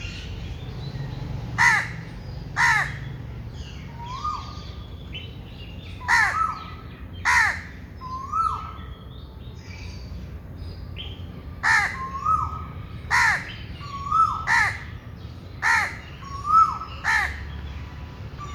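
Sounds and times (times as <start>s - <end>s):
bird giving loud harsh caws: 1.6s - 3.1s, 6.0s - 6.6s, 7.2s - 7.8s, 11.6s - 12.5s, 13.1s - 14.9s, 15.6s - 17.4s.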